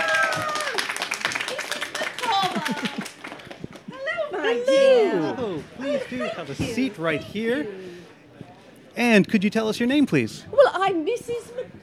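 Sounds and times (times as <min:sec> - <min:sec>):
excited voices and whoops: 0:00.0 - 0:00.9, 0:01.5 - 0:03.2, 0:03.9 - 0:06.1
audience clapping: 0:00.0 - 0:04.1
laughter: 0:01.5 - 0:06.6
speech: 0:02.5 - 0:03.0, 0:04.4 - 0:07.9, 0:09.0 - 0:11.6.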